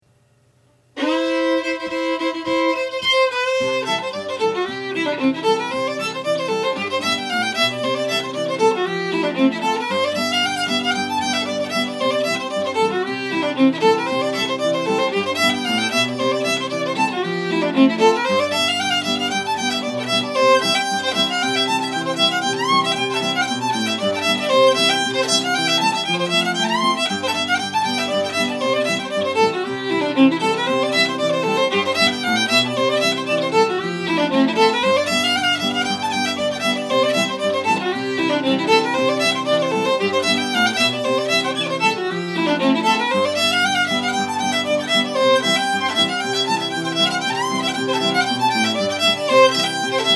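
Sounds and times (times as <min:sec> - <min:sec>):
fiddle playing in C: 0:01.0 - 0:50.1.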